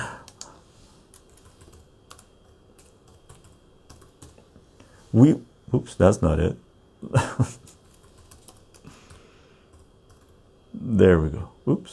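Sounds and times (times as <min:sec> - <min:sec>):
computer keyboard typing: 0:00.2 - 0:00.5, 0:01.1 - 0:04.5, 0:07.6 - 0:10.4
speech: 0:05.1 - 0:07.6, 0:11.0 - 0:11.9.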